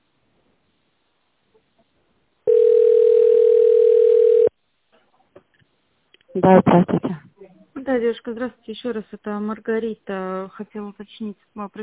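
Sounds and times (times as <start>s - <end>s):
telephone ringback tone while on hold: 2.5s - 4.5s
speech: 6.4s - 7.2s, 7.9s - 11.8s.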